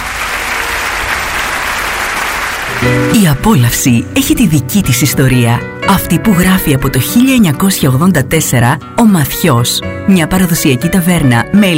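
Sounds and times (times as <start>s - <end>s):
audience applause: 0.0s - 3.3s
speech: 2.8s - 11.7s.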